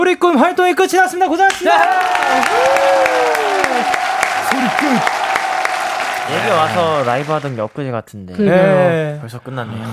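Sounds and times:
speech: 0.1 - 5.2, 6.3 - 9.9
audience applause: 1.5 - 7.9.

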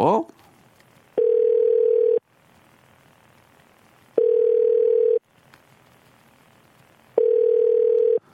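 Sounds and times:
telephone ringback tone while dialing: 1.2 - 2.2, 4.2 - 5.2, 7.2 - 8.2.

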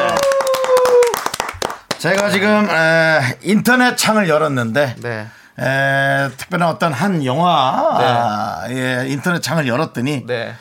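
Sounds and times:
short round of applause from a few people: 0.0 - 2.5
speech: 2.0 - 10.5.

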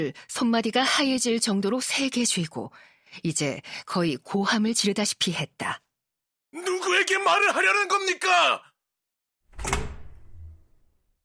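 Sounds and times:
speech: 0.0 - 5.8, 6.5 - 8.7
door bursting open: 9.5 - 11.0.

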